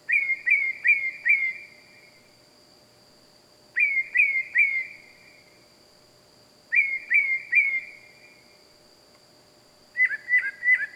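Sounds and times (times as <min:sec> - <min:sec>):
bird calling at night in the wild: 0:00.1 - 0:01.7, 0:03.8 - 0:05.1, 0:06.7 - 0:08.1, 0:10.0 - 0:10.9.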